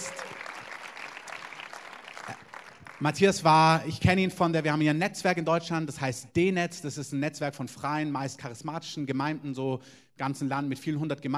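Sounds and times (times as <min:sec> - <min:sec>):
audience applause: 0:00.0 - 0:03.3
speech: 0:03.0 - 0:11.3.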